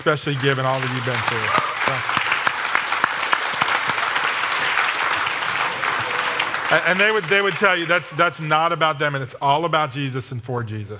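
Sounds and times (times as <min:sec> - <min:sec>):
speech: 0:00.0 - 0:02.2, 0:06.7 - 0:10.9
audience applause: 0:00.0 - 0:08.2.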